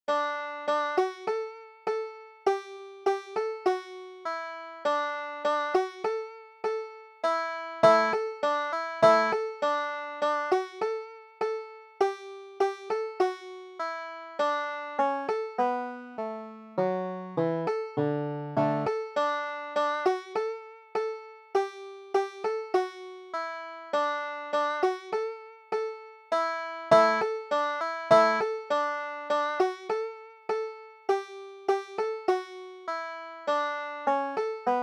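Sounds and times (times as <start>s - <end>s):
banjo: 0.0s - 34.8s.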